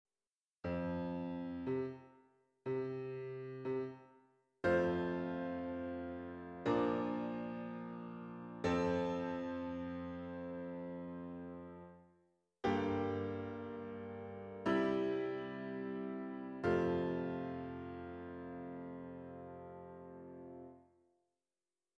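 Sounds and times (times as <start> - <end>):
piano: 0.7 - 20.8.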